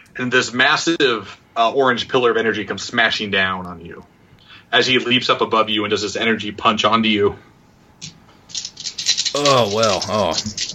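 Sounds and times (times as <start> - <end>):
speech: 0.2 - 4.1, 4.7 - 8.1, 9.4 - 10.7
dice rattling and clattering: 8.5 - 10.7
drawn-out wavering vocal sound: 9.4 - 10.6.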